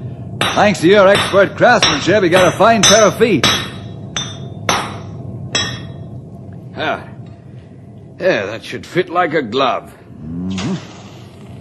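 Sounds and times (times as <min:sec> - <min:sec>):
low rumble: 0:00.0 - 0:11.5
hammer blows on a horseshoe: 0:00.4 - 0:06.0
speech: 0:00.6 - 0:03.6, 0:08.2 - 0:10.8.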